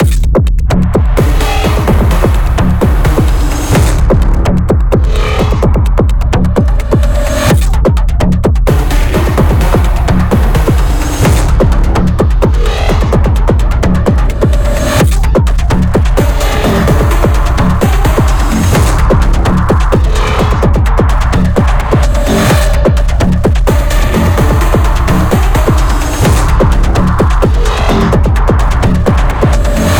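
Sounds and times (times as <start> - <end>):
combat music loop: 0.0 - 29.9.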